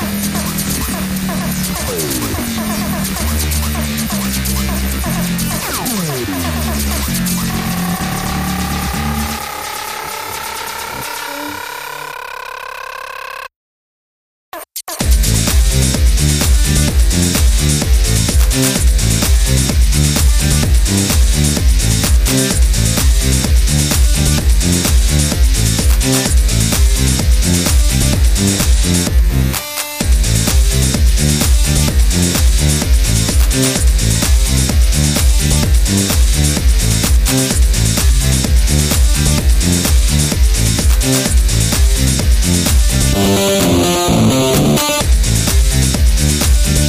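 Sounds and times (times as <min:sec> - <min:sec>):
synth remix: 0:00.0 - 0:13.5, 0:15.0 - 0:46.8.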